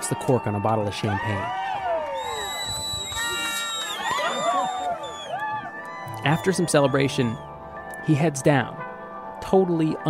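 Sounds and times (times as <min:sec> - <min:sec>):
crowd cheering at a summit: 0:00.0 - 0:07.5
speech: 0:00.1 - 0:01.8, 0:06.2 - 0:08.8, 0:09.5 - 0:10.0.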